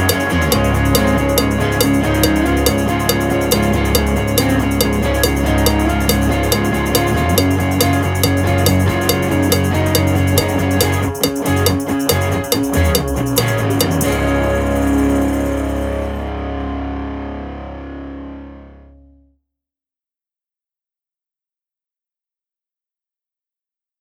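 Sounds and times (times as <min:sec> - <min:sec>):
click track: 0:00.0 - 0:14.2
backing track music: 0:00.0 - 0:18.8.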